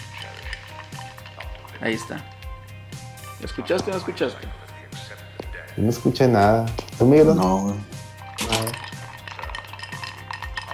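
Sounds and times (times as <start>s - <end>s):
ice cubes clinking against the side of a glass: 0.0s - 2.1s, 8.3s - 10.7s
speech: 1.8s - 2.4s, 3.4s - 4.6s, 5.8s - 7.9s.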